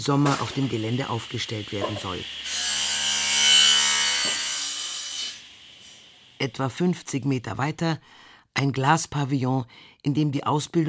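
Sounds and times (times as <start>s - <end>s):
speech: 0.0s - 2.5s, 6.4s - 10.8s
wood being sawn in a workshop: 0.6s - 6.1s.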